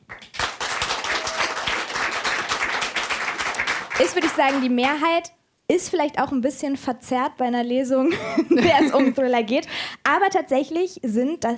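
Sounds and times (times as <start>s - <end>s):
audience clapping: 0.0s - 5.1s
speech: 4.0s - 11.5s.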